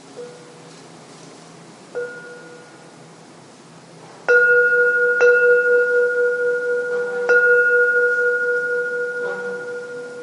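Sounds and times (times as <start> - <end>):
struck bell ringing: 2.0 - 2.9, 4.3 - 10.2.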